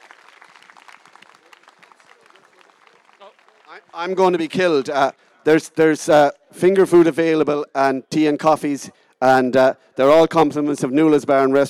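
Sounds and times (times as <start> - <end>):
audience applause: 0.0 - 5.0
speech: 3.2 - 11.6.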